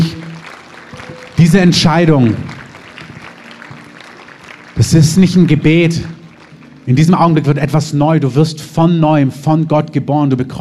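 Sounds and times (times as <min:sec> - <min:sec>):
audience applause: 0:00.0 - 0:07.6
speech: 0:01.4 - 0:02.5, 0:04.8 - 0:06.2, 0:06.9 - 0:10.5.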